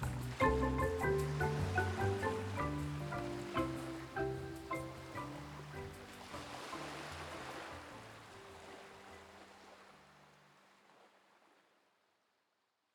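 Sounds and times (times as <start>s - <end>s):
marimba: 0.0s - 9.5s.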